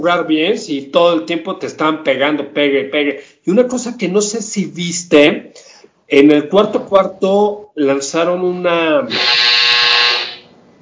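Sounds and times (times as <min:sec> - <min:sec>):
quiet noise: 0:00.0 - 0:09.3
speech: 0:00.0 - 0:09.4
doorbell buzzing: 0:09.1 - 0:10.5.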